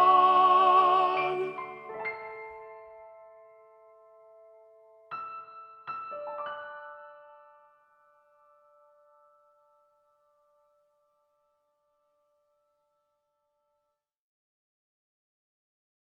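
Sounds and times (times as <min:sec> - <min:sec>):
soprano singing love songs: 0:00.0 - 0:02.9.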